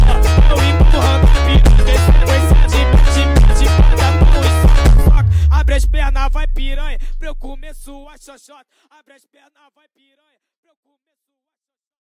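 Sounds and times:
sped up funk music: 0:00.0 - 0:08.1.

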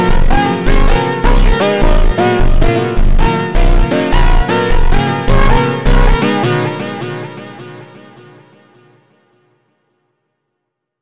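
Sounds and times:
ultra slowed instrumental phonk music: 0:00.0 - 0:07.6.

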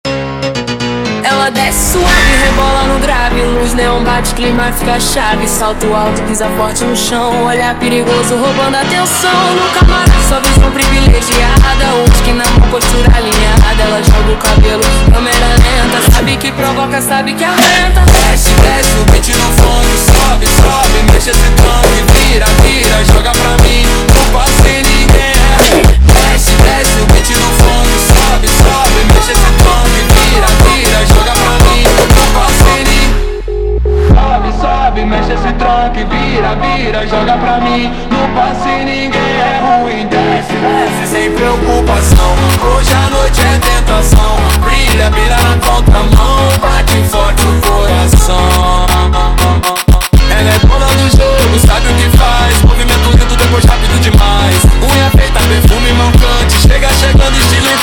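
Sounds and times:
slowed funk music: 0:00.2 - 0:16.7, 0:17.4 - 0:57.8.

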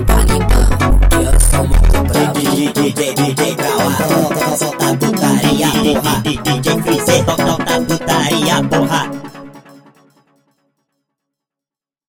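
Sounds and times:
sped up funk music: 0:00.0 - 0:09.6.

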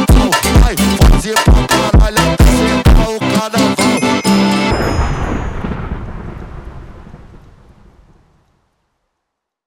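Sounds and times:
funk music: 0:00.0 - 0:05.2.

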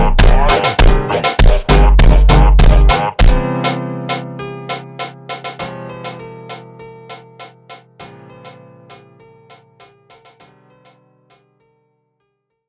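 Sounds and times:
ultra slowed melancholy funk music: 0:00.0 - 0:09.1.

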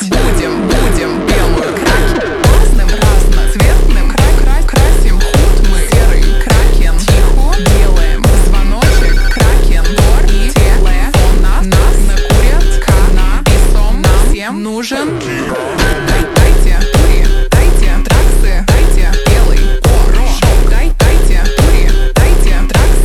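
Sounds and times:
slowed hardstyle music: 0:00.1 - 0:14.4, 0:15.0 - 0:23.0.

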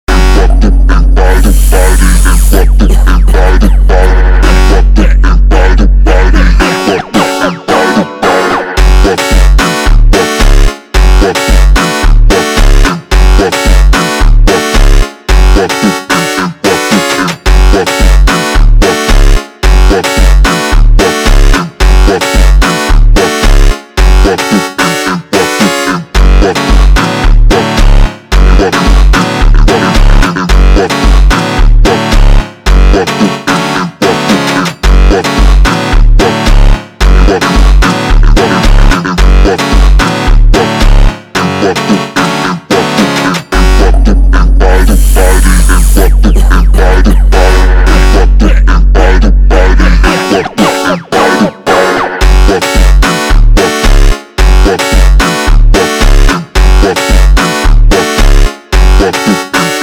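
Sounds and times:
slowed phonk music: 0:00.1 - 0:59.8.

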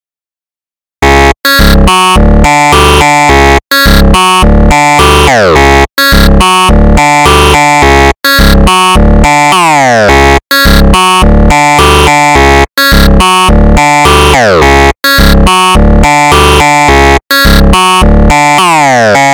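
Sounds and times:
slowed funk music: 0:01.1 - 0:19.2.

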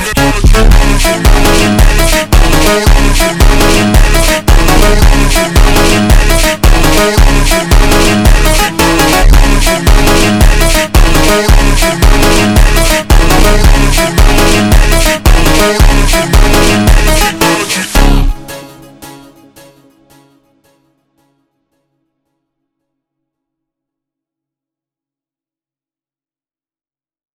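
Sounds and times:
slowed funk music: 0:00.0 - 0:19.2.

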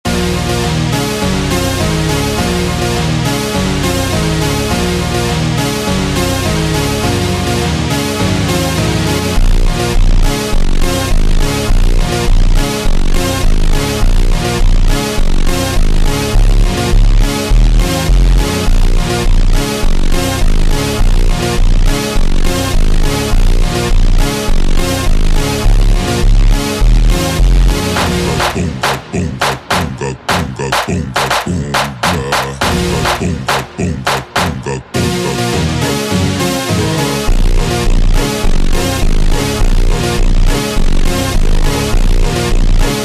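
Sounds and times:
slowed automotivo funk music: 0:00.1 - 0:43.0.

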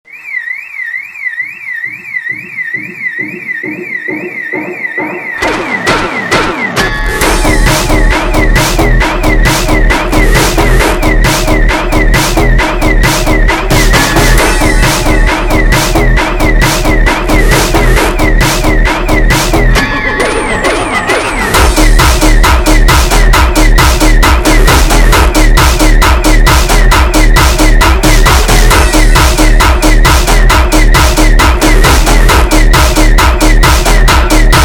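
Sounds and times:
slowed hardtekk music: 0:01.8 - 0:34.6.

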